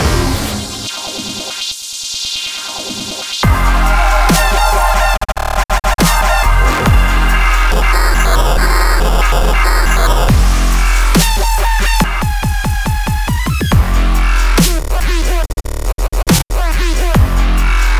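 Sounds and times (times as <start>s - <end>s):
dubstep music: 0.0s - 17.9s.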